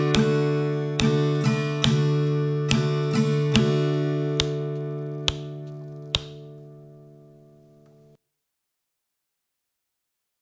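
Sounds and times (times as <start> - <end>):
cowboy guitar strumming: 0.0 - 8.2.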